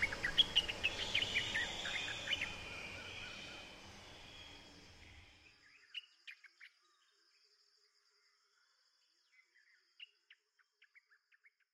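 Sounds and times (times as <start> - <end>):
birds: 0.0 - 5.4.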